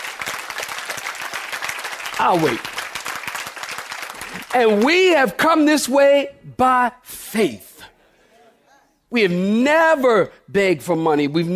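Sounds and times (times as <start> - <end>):
audience clapping hands: 0.0 - 5.4
speech: 2.2 - 2.7, 4.5 - 7.7, 9.1 - 11.5.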